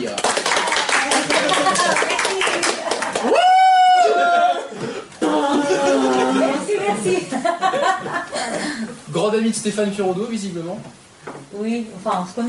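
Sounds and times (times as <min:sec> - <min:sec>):
applause: 0:00.0 - 0:03.8
laughter: 0:01.1 - 0:03.4, 0:04.0 - 0:09.0
speech: 0:08.3 - 0:12.4.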